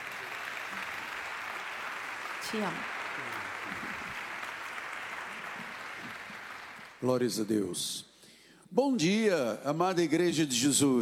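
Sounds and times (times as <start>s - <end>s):
audience applause: 0.0s - 7.3s
speech: 2.5s - 3.9s, 7.0s - 8.1s, 8.7s - 10.9s.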